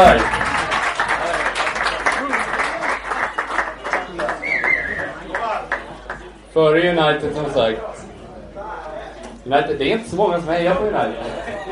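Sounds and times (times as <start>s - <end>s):
speech: 0.0s - 0.4s, 6.6s - 7.9s, 9.5s - 11.7s
audience applause: 0.0s - 6.3s
laughter: 11.0s - 11.7s.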